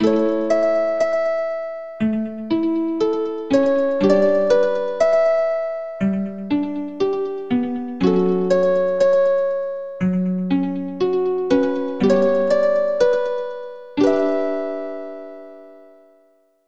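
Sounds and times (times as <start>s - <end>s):
music: 0.0s - 16.6s.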